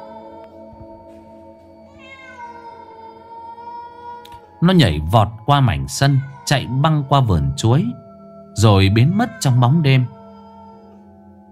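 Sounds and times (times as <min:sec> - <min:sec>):
neighbour's cat meowing beside the house: 0:01.9 - 0:04.4, 0:05.0 - 0:07.7, 0:08.8 - 0:10.9
speech: 0:04.6 - 0:08.0, 0:08.6 - 0:10.2.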